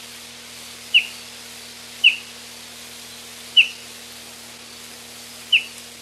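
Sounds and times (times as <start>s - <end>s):
Baikal bullfinch sharp high calls: 0.9s - 1.1s, 2.0s - 2.3s, 3.5s - 3.8s, 5.5s - 5.7s.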